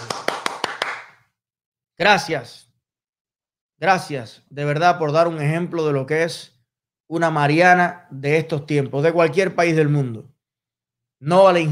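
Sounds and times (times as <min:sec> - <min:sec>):
applause: 0:00.0 - 0:01.3
speech: 0:02.0 - 0:02.7, 0:03.8 - 0:06.5, 0:07.1 - 0:10.3, 0:11.2 - 0:11.7.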